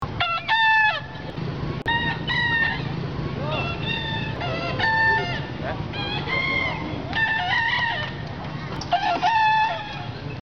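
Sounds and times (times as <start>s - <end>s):
bekisar chickens at a contest final: 0.2s - 10.4s.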